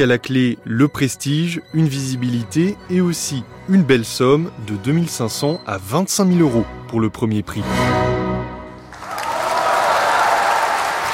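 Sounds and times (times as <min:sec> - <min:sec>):
speech: 0:00.0 - 0:08.1
audience applause: 0:08.9 - 0:11.1.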